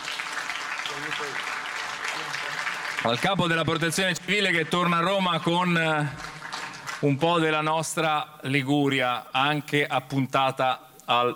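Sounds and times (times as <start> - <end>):
soft applause for the head of the Italian Civil Protection in Liguria: 0.0 - 7.4
speech: 0.9 - 6.4, 7.0 - 11.3.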